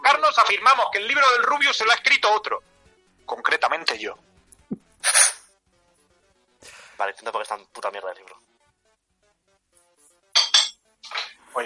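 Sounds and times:
speech: 0:00.3 - 0:02.7, 0:03.3 - 0:04.3, 0:07.0 - 0:08.5
plate dropping and breaking: 0:10.4 - 0:11.4.

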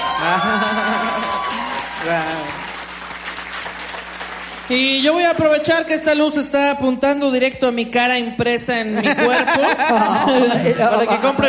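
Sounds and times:
audience applause: 0:00.0 - 0:04.9
laughter: 0:00.1 - 0:01.7, 0:09.0 - 0:11.4
speech: 0:00.2 - 0:01.1, 0:02.0 - 0:02.7, 0:04.7 - 0:11.4.

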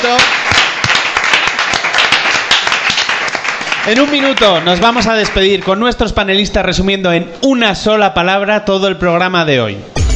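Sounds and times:
speech: 0:00.0 - 0:00.4, 0:03.9 - 0:10.0
audience applause: 0:00.0 - 0:05.8.

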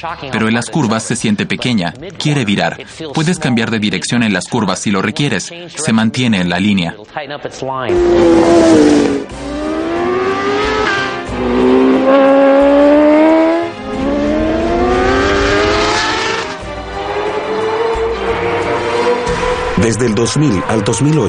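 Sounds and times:
speech: 0:00.0 - 0:09.5, 0:19.8 - 0:21.2
Suzuki GSX-R 1000 sport motorcycle accelerating hard through the gears: 0:07.9 - 0:19.8.

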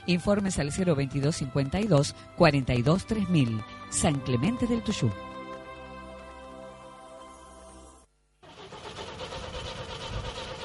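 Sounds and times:
speech: 0:00.1 - 0:05.3
car engine cranking but failing to start: 0:08.4 - 0:10.6.

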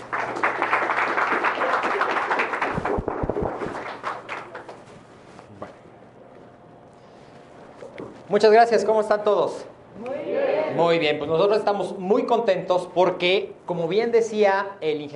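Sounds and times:
audience applause welcoming speaker: 0:00.0 - 0:04.8
low steady hum: 0:00.0 - 0:15.1
speech: 0:08.3 - 0:10.1, 0:10.8 - 0:15.1.

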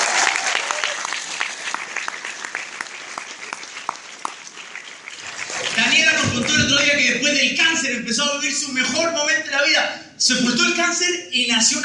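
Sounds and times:
audience applause: 0:00.0 - 0:06.9
speech: 0:06.4 - 0:11.8.

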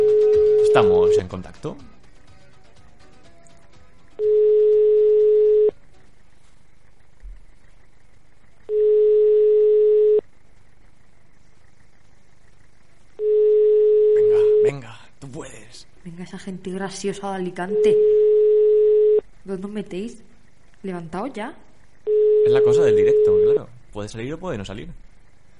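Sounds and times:
telephone ringback tone on a live call: 0:00.0 - 0:01.2, 0:04.2 - 0:05.7, 0:08.7 - 0:10.2, 0:13.2 - 0:14.7, 0:17.7 - 0:19.2, 0:22.1 - 0:23.6
speech: 0:00.8 - 0:02.0, 0:16.3 - 0:18.2, 0:19.5 - 0:21.7, 0:22.4 - 0:25.0.

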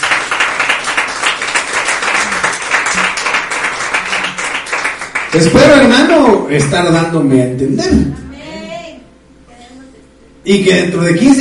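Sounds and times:
audience applauding: 0:00.0 - 0:06.1
speech: 0:05.3 - 0:08.2, 0:10.4 - 0:11.3.

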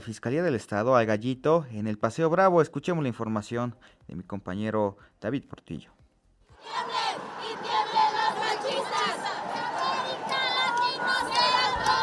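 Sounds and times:
speech: 0:00.0 - 0:06.0
crowd of women chanting at protest march: 0:06.6 - 0:12.0.

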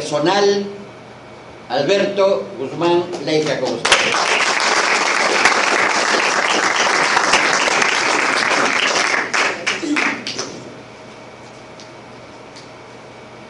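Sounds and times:
speech: 0:00.1 - 0:00.8, 0:01.7 - 0:04.5
crowd applauding: 0:03.8 - 0:10.6.

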